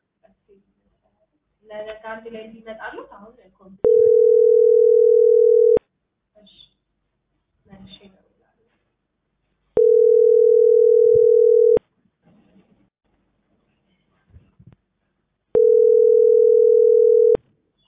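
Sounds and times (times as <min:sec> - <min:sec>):
speech: 0:01.6 - 0:05.8
ringback tone of an unanswered phone call: 0:03.8 - 0:05.8, 0:09.8 - 0:11.8, 0:15.6 - 0:17.4.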